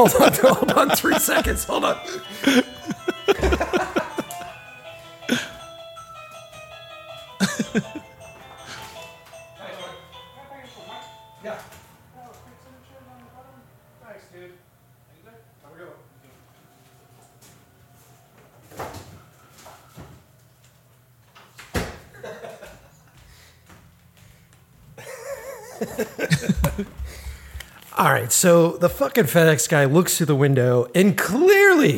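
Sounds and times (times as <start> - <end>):
speech: 0.0 - 3.7, 28.0 - 31.9
laughter: 0.0 - 4.6, 7.4 - 8.1, 22.2 - 23.1, 25.0 - 27.2
electronic doorbell chime melody: 1.5 - 12.2.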